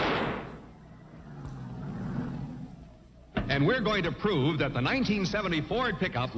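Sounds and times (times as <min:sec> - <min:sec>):
hair trigger explosive flare going off: 0:00.0 - 0:00.7
speech: 0:03.5 - 0:06.3.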